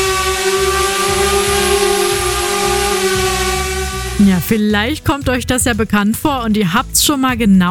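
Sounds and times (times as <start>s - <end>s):
drone buzzing overhead: 0.0s - 4.7s
speech: 4.2s - 7.6s.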